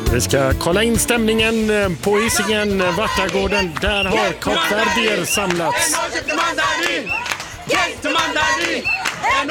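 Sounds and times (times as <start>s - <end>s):
speech: 0.1s - 9.5s
crowd of football fans cheering: 2.1s - 9.5s
people clapping: 2.7s - 9.5s.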